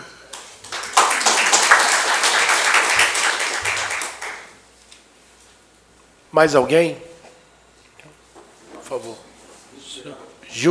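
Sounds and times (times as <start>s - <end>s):
audience applause: 0.6s - 4.6s
speech: 6.3s - 7.1s, 8.9s - 9.3s, 10.0s - 10.6s.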